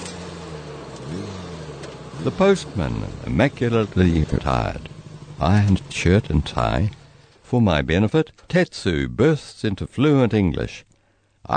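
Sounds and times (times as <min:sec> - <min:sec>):
small motorbike engine: 0:00.0 - 0:07.4
speech: 0:02.2 - 0:11.5.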